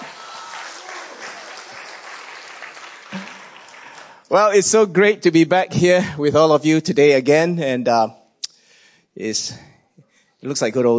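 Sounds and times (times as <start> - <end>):
audience applauding: 0.0 - 4.4
speech: 4.3 - 8.2, 9.2 - 9.7, 10.4 - 10.9.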